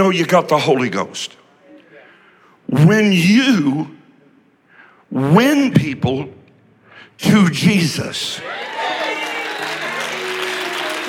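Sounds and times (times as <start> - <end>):
speech: 0.0 - 1.4, 2.7 - 4.0, 5.1 - 6.4, 7.2 - 9.0
audience clapping: 8.5 - 11.0.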